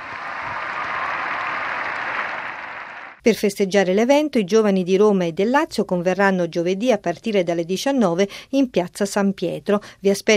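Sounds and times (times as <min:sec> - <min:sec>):
crowd applause in a square: 0:00.0 - 0:03.2
speech: 0:03.2 - 0:10.3.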